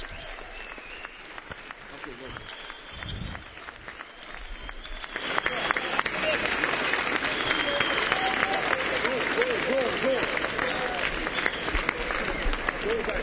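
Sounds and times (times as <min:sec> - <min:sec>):
audience applause: 0:00.0 - 0:13.2.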